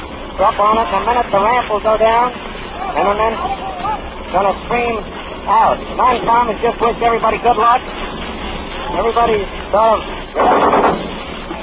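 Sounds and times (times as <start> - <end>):
steady rumbling noise: 0.0 - 11.6
speech: 0.4 - 3.7, 4.3 - 8.2, 8.9 - 11.1
machine gun firing from a landing craft: 10.4 - 11.2.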